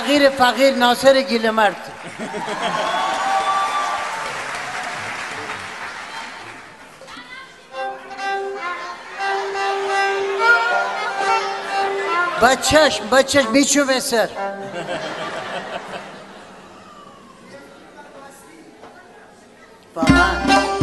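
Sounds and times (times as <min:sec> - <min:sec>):
speech: 0:00.1 - 0:03.1, 0:12.4 - 0:15.2
audience applause honoring a group of young performers: 0:01.9 - 0:12.2
laughter: 0:02.0 - 0:03.3, 0:14.6 - 0:17.0.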